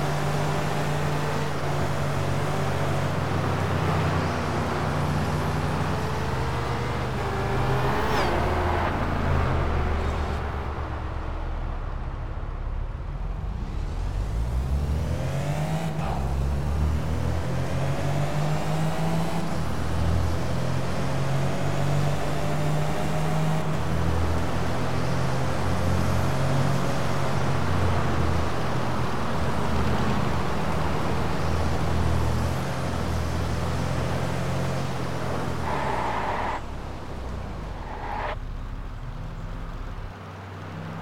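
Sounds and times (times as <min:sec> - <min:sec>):
Audi S4 Cabriolet: 0:00.0 - 0:41.0.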